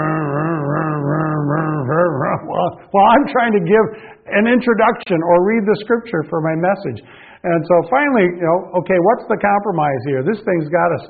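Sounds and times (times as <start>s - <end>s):
voice imitating the loud motor of a church projection screen: 0.0s - 2.9s
speech: 2.6s - 11.0s.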